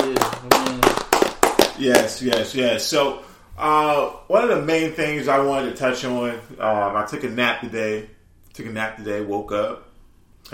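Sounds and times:
round of applause: 0:00.0 - 0:02.2
speech: 0:01.8 - 0:09.9.

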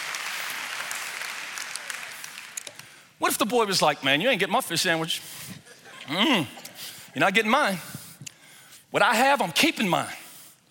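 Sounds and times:
crowd clapping hands: 0:00.0 - 0:03.2
speech: 0:03.2 - 0:05.5, 0:06.1 - 0:07.9, 0:08.9 - 0:10.2.

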